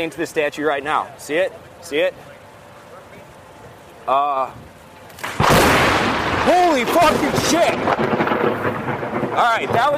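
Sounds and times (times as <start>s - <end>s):
speech: 0.0s - 2.4s, 4.0s - 5.8s, 6.4s - 9.9s
lightning strike with thunder crack: 5.2s - 9.9s.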